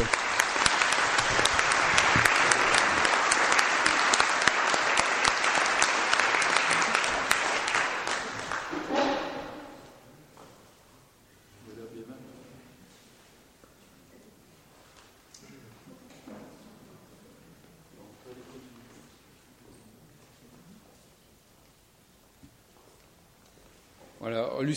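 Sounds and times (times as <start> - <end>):
audience applause: 0.0 - 9.4.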